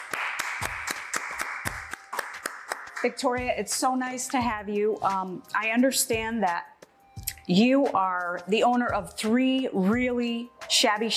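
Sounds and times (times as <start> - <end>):
audience clapping to welcome a talk show guest: 0.0 - 3.2
speech: 3.0 - 6.7, 7.5 - 11.1.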